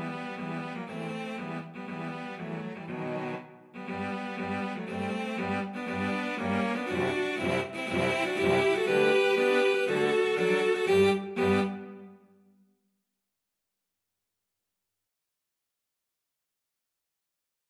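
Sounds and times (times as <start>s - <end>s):
cello quartet: 0.0s - 12.0s.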